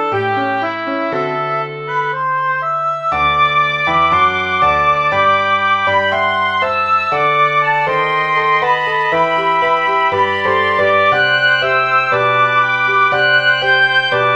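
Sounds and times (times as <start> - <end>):
soprano flute: 0.0 - 14.3.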